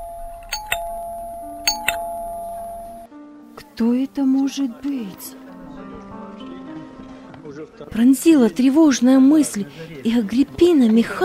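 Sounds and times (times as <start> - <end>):
doorbell two-note chime: 0.0 - 3.1
speech: 3.8 - 5.4, 7.8 - 11.2.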